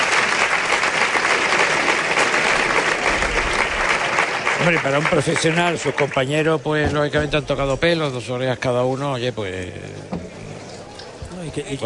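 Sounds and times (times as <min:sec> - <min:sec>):
crowd applauding at a bullfight: 0:00.0 - 0:07.2
speech: 0:04.6 - 0:10.2, 0:11.6 - 0:11.8.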